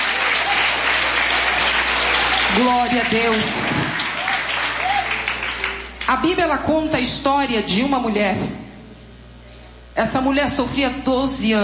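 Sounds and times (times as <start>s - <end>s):
church congregation applauding: 0.0s - 6.1s
speech: 2.5s - 4.0s, 6.1s - 8.6s, 10.0s - 11.6s.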